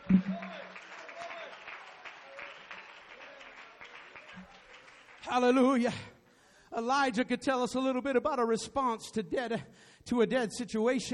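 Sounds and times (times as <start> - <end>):
audience clapping: 0.0 - 5.6
speech: 5.3 - 6.1, 6.8 - 11.1.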